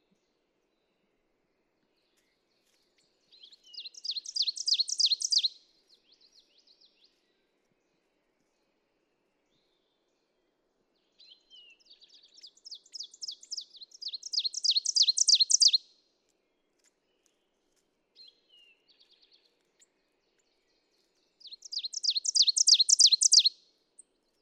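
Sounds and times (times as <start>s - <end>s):
ovenbird singing: 3.3s - 5.6s, 11.2s - 15.8s, 21.4s - 23.6s.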